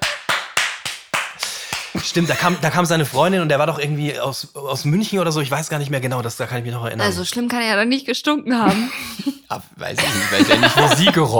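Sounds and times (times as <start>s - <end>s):
rhythmic slapping claps of hands smacking on skin: 0.0s - 3.2s
speech: 1.9s - 11.3s
laughter: 2.0s - 2.9s, 10.0s - 11.3s.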